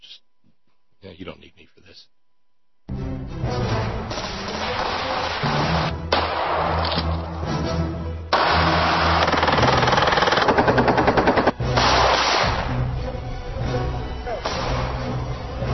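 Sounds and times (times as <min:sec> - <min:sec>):
speech: 0:01.0 - 0:02.2
music: 0:02.9 - 0:15.7
gunfire shooting ballistic gelatin, watermelons, cinder blocks and plywood: 0:04.1 - 0:07.2, 0:08.3 - 0:12.8, 0:14.4 - 0:15.0.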